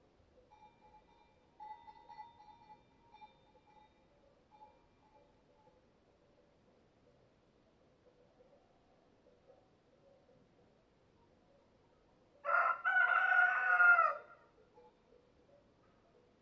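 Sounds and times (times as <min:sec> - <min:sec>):
rooster crowing cock-a-doodle-doo: 0:12.4 - 0:14.4.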